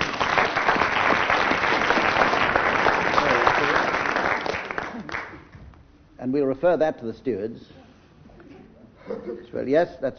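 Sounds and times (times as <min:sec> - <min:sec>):
large audience applause: 0:00.0 - 0:05.5
speech: 0:06.3 - 0:07.8, 0:09.3 - 0:10.1.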